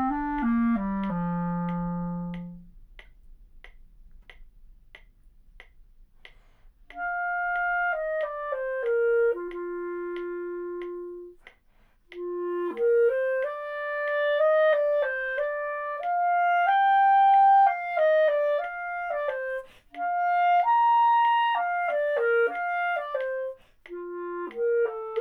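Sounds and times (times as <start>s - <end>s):
piano piece: 0.0s - 2.7s
metronome ticking: 0.0s - 25.1s.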